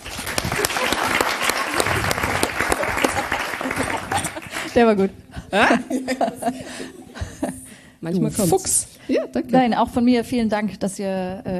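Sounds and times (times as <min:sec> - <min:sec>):
live audience applause: 0:00.0 - 0:04.8
laughter: 0:00.3 - 0:07.8
speech: 0:04.8 - 0:07.0, 0:08.0 - 0:11.5.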